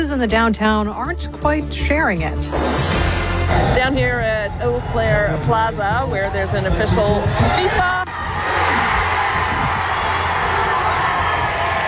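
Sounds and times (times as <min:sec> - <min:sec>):
speech: 0:00.0 - 0:08.0
crowd at a soccer watch party at Eau Claire Plaza: 0:03.4 - 0:11.8.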